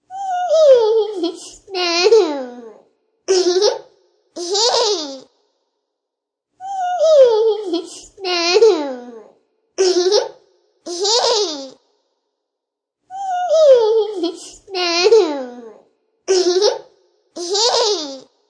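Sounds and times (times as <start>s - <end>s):
toddler giggling: 0.2s - 2.6s, 3.3s - 5.3s, 6.7s - 9.0s, 9.8s - 11.8s, 13.2s - 15.7s, 16.3s - 18.2s.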